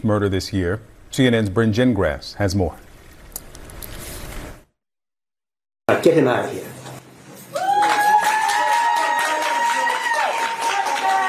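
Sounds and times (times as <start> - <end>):
speech: 0.0 - 2.8, 6.0 - 6.7
courtroom applause at a sentencing: 7.5 - 11.2.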